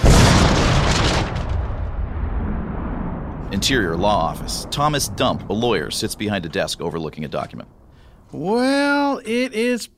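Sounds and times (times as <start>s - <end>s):
plane crashing into a bus: 0.0s - 7.0s
speech: 3.6s - 9.9s.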